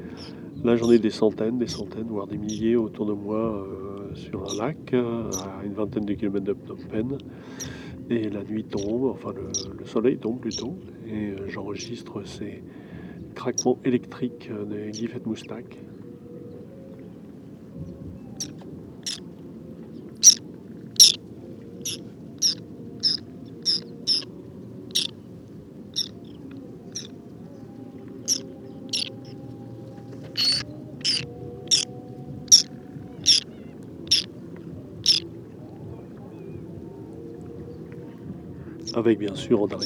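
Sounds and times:
low hum: 0.0s - 39.8s
whiskered tern flock harsh contact calls: 18.4s - 19.2s, 20.2s - 20.4s, 21.0s - 21.2s, 21.8s - 24.3s, 24.9s - 25.2s, 25.9s - 27.2s, 28.1s - 29.4s, 30.0s - 31.9s, 32.5s - 34.4s, 35.0s - 35.3s.

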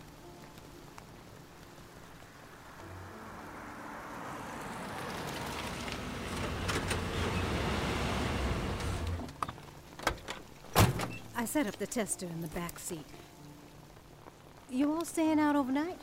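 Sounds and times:
incoming truck approaching: 2.0s - 9.6s
speech: 11.4s - 13.3s, 14.7s - 16.0s.

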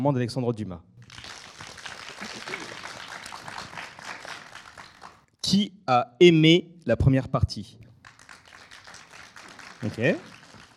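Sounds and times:
speech: 0.0s - 1.2s, 5.5s - 7.8s, 9.8s - 10.3s
audience applause: 1.0s - 5.2s, 8.0s - 10.7s.

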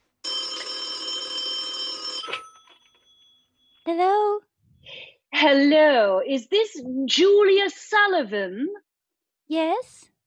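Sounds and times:
telephone electric bell ringing: 0.2s - 3.9s
speech: 3.9s - 4.5s, 5.4s - 8.8s, 9.5s - 10.1s.

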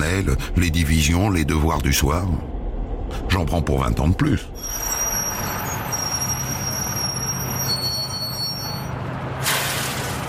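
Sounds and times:
trains rumbling at Gare de Lyon platform in Paris: 0.0s - 10.2s
speech: 0.1s - 4.9s
high squealing tones of trains at Gare de Lyon: 4.5s - 9.0s.

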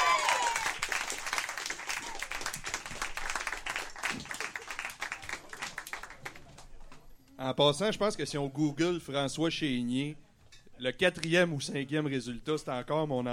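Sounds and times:
applause: 0.0s - 7.1s
speech: 7.4s - 10.2s, 10.8s - 13.3s.

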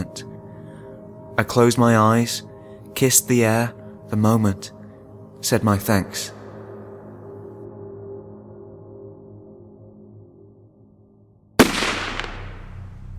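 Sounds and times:
low steady drone: 0.0s - 13.1s
speech: 1.4s - 4.8s, 5.4s - 6.4s
gunshot echoing in a stone chamber: 11.6s - 12.9s.

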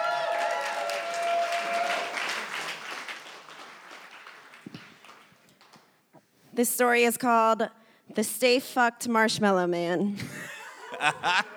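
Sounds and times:
audience clapping: 0.0s - 6.0s
speech: 6.6s - 11.5s
laughter: 10.2s - 11.5s.

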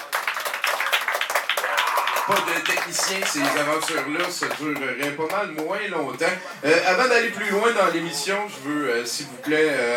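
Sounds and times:
audience applauding a sound technician at a mixing console: 0.0s - 5.4s
speech: 2.3s - 9.9s.

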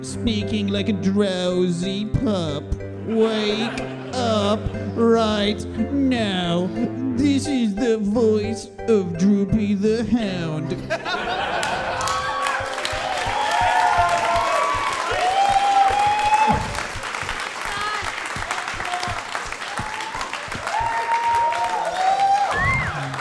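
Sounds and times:
speech: 0.0s - 11.5s
laughter: 3.0s - 5.0s, 10.8s - 13.3s
audience applause: 11.2s - 23.2s.

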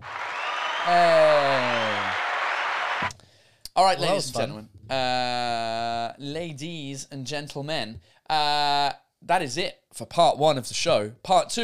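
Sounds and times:
applause sound effect from button: 0.0s - 3.1s
speech: 0.8s - 1.3s, 3.8s - 11.6s.

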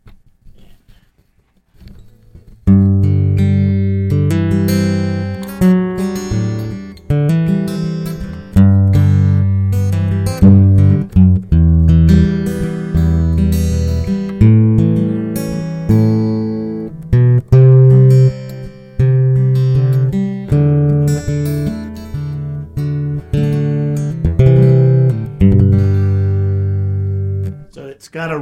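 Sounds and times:
Ovation classical guitar with old-style pickup playing: 2.1s - 27.7s.

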